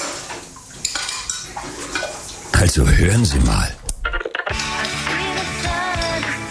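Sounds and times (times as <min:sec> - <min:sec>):
dishes and cutlery clinking while being washed up: 0:00.8 - 0:02.2, 0:04.6 - 0:06.4
speech: 0:02.7 - 0:03.8.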